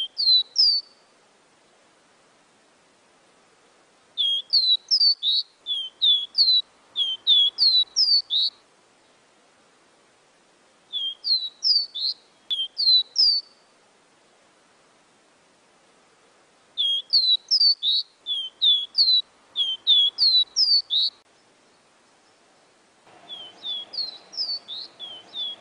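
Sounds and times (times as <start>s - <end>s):
seedeater song: 0.0s - 1.1s, 4.2s - 8.6s, 10.9s - 13.7s, 16.8s - 21.2s, 23.2s - 25.5s
background hiss: 0.0s - 25.5s.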